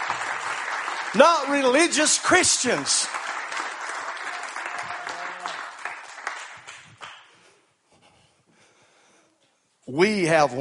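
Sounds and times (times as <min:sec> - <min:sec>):
crowd hand clapping: 0:00.0 - 0:07.4
speech: 0:01.1 - 0:03.2, 0:10.0 - 0:10.5.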